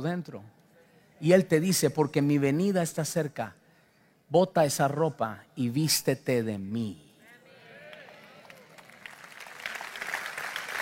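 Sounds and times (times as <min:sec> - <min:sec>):
speech: 0:00.0 - 0:00.6, 0:01.2 - 0:03.6, 0:04.3 - 0:07.0
audience applauding: 0:07.9 - 0:10.8.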